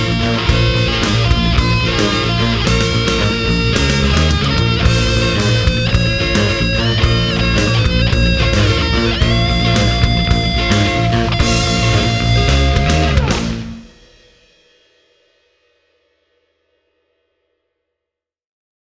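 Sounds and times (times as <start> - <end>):
funky intro music: 0.0 - 14.1.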